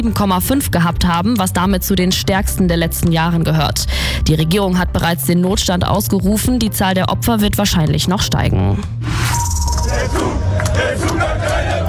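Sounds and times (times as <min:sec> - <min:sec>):
speech: 0:00.0 - 0:11.3
crowd cheering: 0:09.8 - 0:11.8
football fans chanting in a city square: 0:09.8 - 0:11.8.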